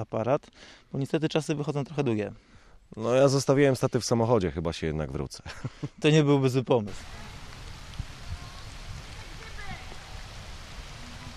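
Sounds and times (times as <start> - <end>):
speech: 0.0 - 7.3
light rain falling: 5.5 - 11.3.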